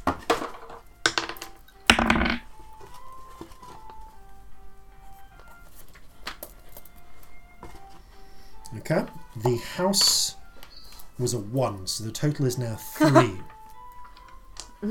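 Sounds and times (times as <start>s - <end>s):
six-sided dice clattering as they are rolled in a tabletop game: 0.4s - 2.5s
speech: 8.9s - 10.4s, 11.2s - 13.5s.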